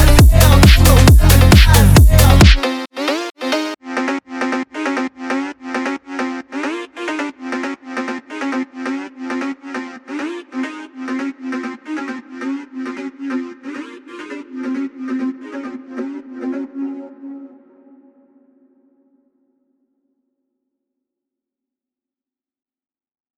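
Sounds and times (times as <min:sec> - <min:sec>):
drift phonk music: 0:00.0 - 0:17.6.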